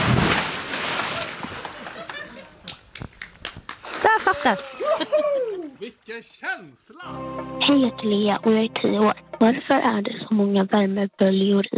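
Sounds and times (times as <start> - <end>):
person jumping into water: 0.0 - 1.7, 3.8 - 5.7
water sloshing and dripping: 0.0 - 2.0, 3.6 - 5.9
laughter: 1.1 - 2.7, 4.0 - 7.2
speech: 4.3 - 11.7.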